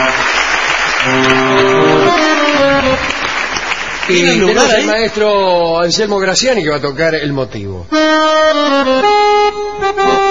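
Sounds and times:
applause: 0.0 - 5.1
speech: 4.1 - 10.2.

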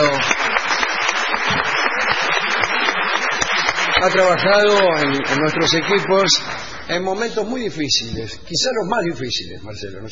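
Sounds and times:
audience applause: 0.0 - 7.3
speech: 4.0 - 10.1.

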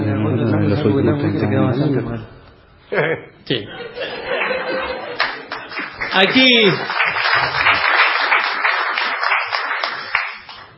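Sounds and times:
speech: 0.2 - 4.4, 6.1 - 7.7
laughter: 2.9 - 5.9
audience applause at a live show by a music trio: 4.3 - 10.7.

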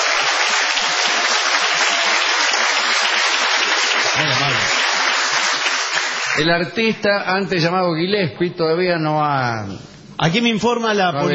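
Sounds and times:
audience giving a big ovation: 0.0 - 6.5
speech: 6.4 - 11.3.

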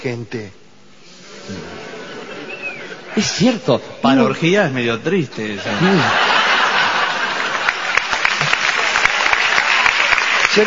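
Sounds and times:
speech: 0.0 - 0.6, 1.5 - 1.8, 3.2 - 6.3
laughter: 1.2 - 3.6, 5.4 - 9.1
audience applause: 5.8 - 10.6.

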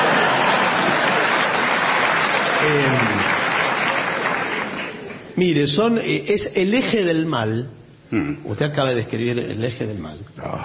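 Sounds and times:
crowd applause: 0.0 - 5.4
speech: 5.4 - 10.6.

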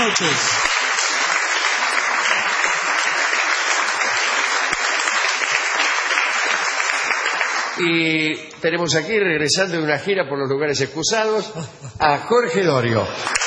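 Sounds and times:
speech: 0.0 - 0.7, 7.8 - 13.4
audience applause: 0.0 - 7.8, 13.1 - 13.4
laughter: 11.3 - 13.4.

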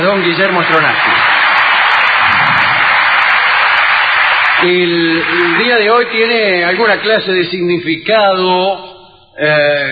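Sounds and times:
speech: 0.0 - 1.2, 4.6 - 9.9
applause: 0.0 - 7.5.

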